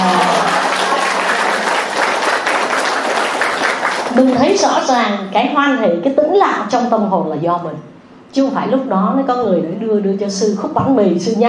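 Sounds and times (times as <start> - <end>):
crowd applauding: 0.0 - 4.5
speech: 4.5 - 11.4.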